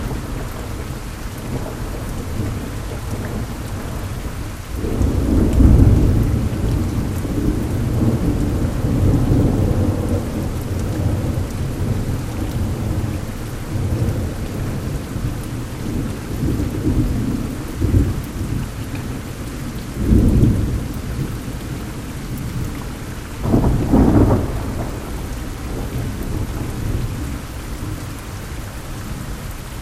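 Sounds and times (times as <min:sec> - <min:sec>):
thunderstorm in Oklahoma in October: 0:00.0 - 0:29.8.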